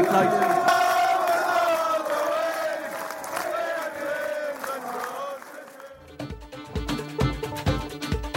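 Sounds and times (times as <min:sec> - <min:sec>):
stadium crowd cheering after rugby victory: 0:00.0 - 0:06.1
crowd rhythmic clapping: 0:00.0 - 0:08.2.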